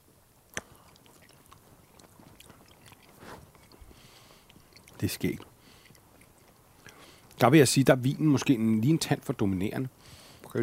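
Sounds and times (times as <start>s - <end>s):
chewing salami at a wine tasting: 0.4s - 7.4s
speech: 5.0s - 5.5s, 7.4s - 10.6s.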